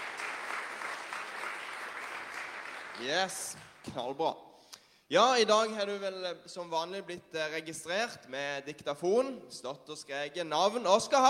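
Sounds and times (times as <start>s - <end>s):
audience clapping: 0.0s - 3.9s
speech: 3.0s - 4.4s, 5.1s - 11.2s.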